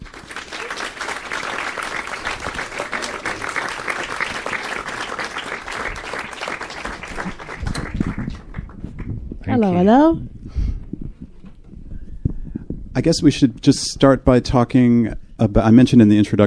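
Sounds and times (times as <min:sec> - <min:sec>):
audience applause at a film screening welcoming documentary directors: 0:00.0 - 0:09.2
speech: 0:09.6 - 0:10.2, 0:13.0 - 0:16.4.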